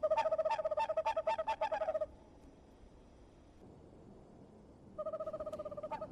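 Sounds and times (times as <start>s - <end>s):
Western Screech-Owl tooting: 0.0s - 2.1s, 5.0s - 6.0s.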